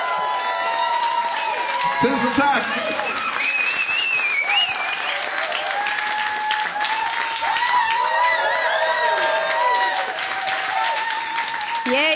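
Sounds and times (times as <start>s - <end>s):
audience applause: 0.0s - 12.1s
speech: 2.0s - 3.3s.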